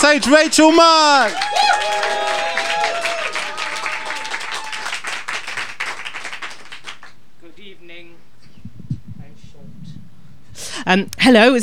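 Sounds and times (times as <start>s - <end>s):
crowd whooping and cheering: 0.0s - 6.8s
audience clapping: 0.0s - 7.2s
speech: 0.1s - 2.2s, 10.9s - 11.6s.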